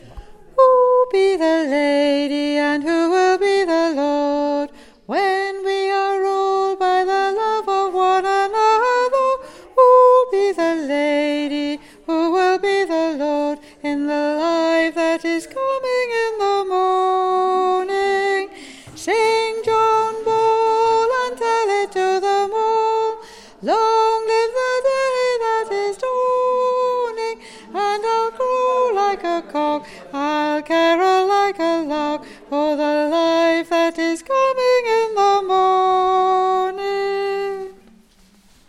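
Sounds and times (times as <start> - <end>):
soprano singing: 0.5 - 37.9.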